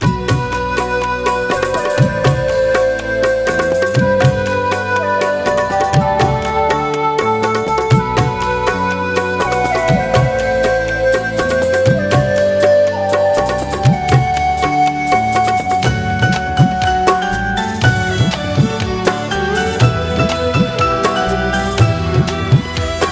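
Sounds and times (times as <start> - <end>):
music: 0.0 - 23.0.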